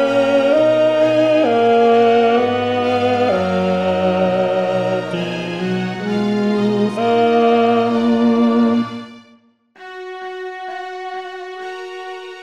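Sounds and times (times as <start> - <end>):
choral singing: 0.0 - 9.1.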